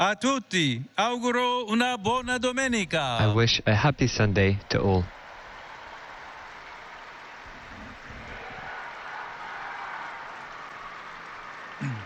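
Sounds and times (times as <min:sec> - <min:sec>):
speech: 0:00.0 - 0:05.2
applause from pilgrims in St. Peter's Square: 0:04.1 - 0:12.0.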